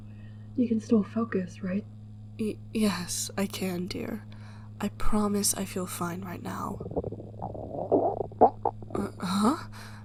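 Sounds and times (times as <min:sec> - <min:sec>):
speech: 0:00.6 - 0:07.2, 0:09.0 - 0:10.0
loud stomach gurgle: 0:06.6 - 0:09.3.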